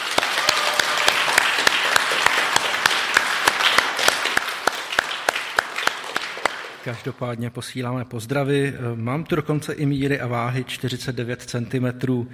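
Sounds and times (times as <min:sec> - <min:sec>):
group of people applauding: 0:00.0 - 0:07.2
speech: 0:06.8 - 0:12.3.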